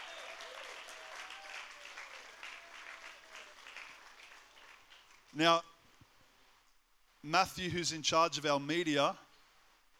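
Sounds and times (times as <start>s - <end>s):
round of applause: 0.0s - 5.4s
speech: 5.4s - 5.7s, 7.2s - 9.2s.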